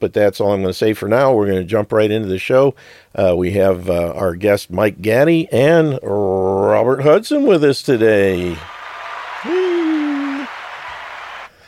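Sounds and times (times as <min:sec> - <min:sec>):
speech: 0:00.0 - 0:08.7
applause: 0:08.5 - 0:11.6
long low whoop of cheering: 0:08.6 - 0:11.5.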